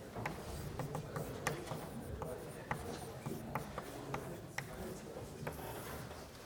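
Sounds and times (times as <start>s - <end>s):
lecturer writing a large heading, scratches and taps: 0.1s - 6.3s.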